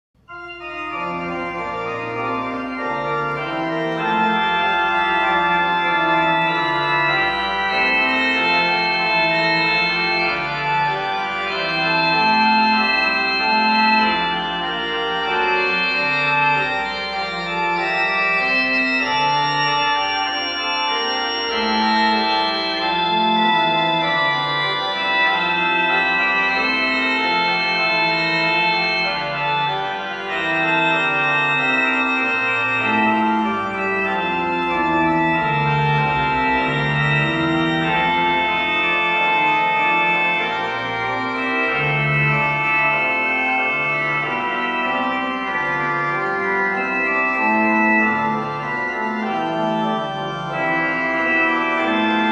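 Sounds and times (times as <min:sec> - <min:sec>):
organ chorale prelude: 0:00.2 - 0:52.3.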